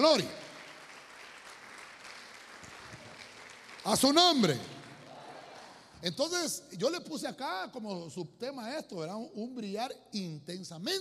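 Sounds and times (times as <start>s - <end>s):
speech: 0.0s - 0.4s, 3.8s - 4.7s, 6.0s - 10.9s
audience clapping loudly: 0.0s - 6.0s.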